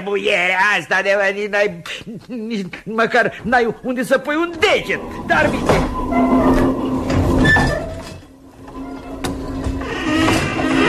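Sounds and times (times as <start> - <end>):
speech: 0.0 - 6.6
noisy tram rumbling along: 4.0 - 8.2
brief metallic squeal of a tram: 4.6 - 10.8.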